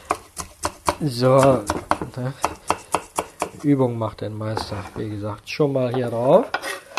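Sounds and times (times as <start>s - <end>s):
knife dicing food into fine cubes: 0.0s - 3.7s
speech: 1.0s - 2.7s, 3.6s - 6.7s.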